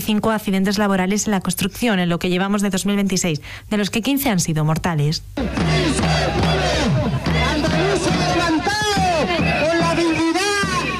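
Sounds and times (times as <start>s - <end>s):
speech: 0.1s - 6.8s
crowd babble: 5.4s - 10.9s
striking logistics workers shouting and chanting in Seville: 5.4s - 10.9s.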